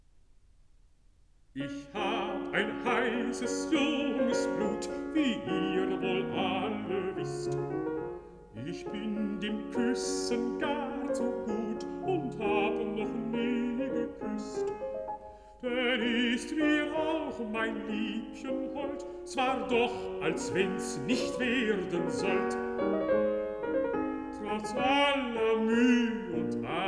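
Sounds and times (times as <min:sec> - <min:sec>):
piano: 0:00.0 - 0:26.8
person singing: 0:01.6 - 0:07.8, 0:08.6 - 0:23.0, 0:24.2 - 0:26.8.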